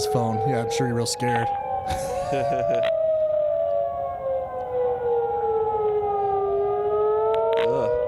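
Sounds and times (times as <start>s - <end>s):
tornado warning siren: 0.0s - 8.0s
speech: 0.1s - 3.0s
laughter: 1.9s - 2.9s.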